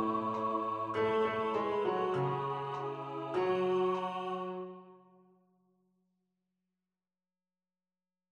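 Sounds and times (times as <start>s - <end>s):
tenor voices singing: 0.0s - 4.9s
piano: 0.0s - 5.0s.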